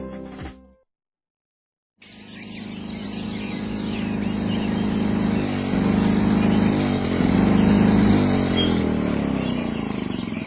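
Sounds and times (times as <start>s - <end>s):
noisy lawnmower engine: 2.1s - 10.4s.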